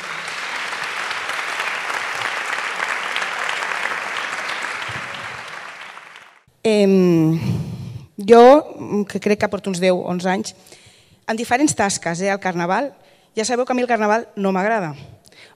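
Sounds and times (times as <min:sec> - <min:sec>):
large audience applause: 0:00.0 - 0:06.5
speech: 0:06.6 - 0:07.6, 0:08.2 - 0:15.5.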